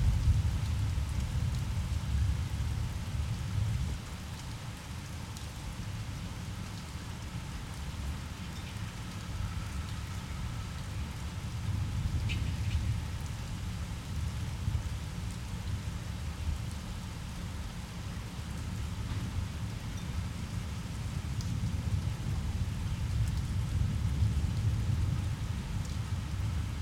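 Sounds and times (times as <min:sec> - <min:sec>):
rain: 0:00.0 - 0:26.8.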